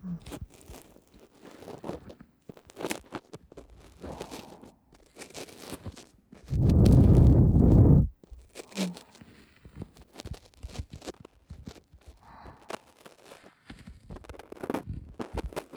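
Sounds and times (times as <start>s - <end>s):
blowing into ear, ASMR: 6.5s - 8.1s.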